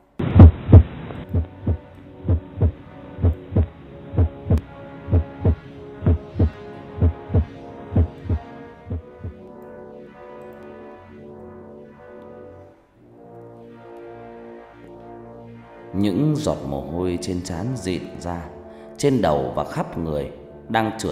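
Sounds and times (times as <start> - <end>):
heartbeat sound effect: 0.3 - 9.4
speech: 16.4 - 21.1.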